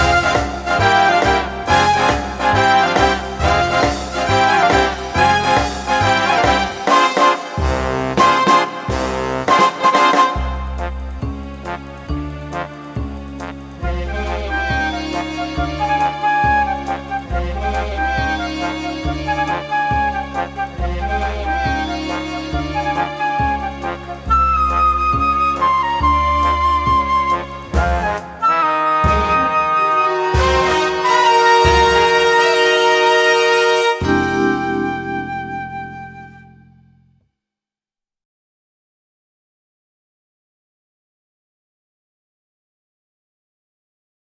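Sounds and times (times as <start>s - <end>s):
flute: 0.0s - 10.8s, 14.0s - 36.8s.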